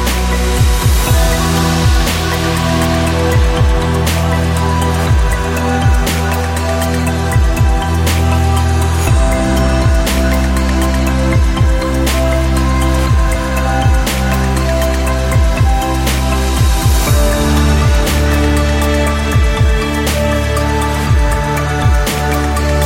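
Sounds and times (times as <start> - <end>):
deep documentary ambient music: 0.0 - 22.8.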